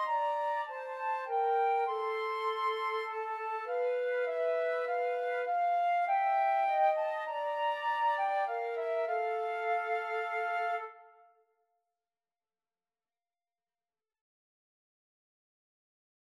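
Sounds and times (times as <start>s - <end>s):
clarinet: 0.0s - 11.4s
two flutes: 0.0s - 11.4s.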